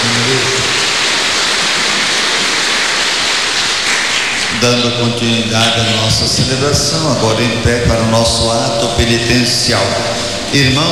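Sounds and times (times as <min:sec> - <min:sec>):
audience applauding: 0:00.0 - 0:06.6
speech: 0:04.6 - 0:10.9.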